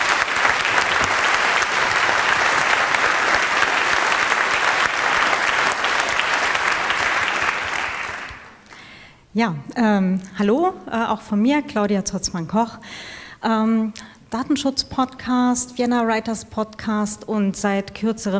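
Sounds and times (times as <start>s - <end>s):
audience applauding: 0.0s - 8.8s
speech: 9.4s - 18.3s.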